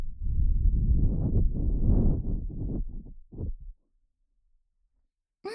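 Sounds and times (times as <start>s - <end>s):
breath blowing into right ear ASMR: 0.3s - 3.7s.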